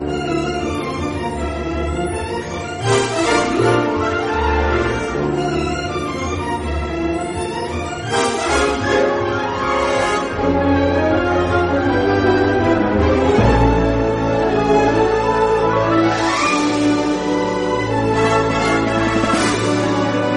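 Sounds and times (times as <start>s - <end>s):
train music: 0.0s - 20.3s.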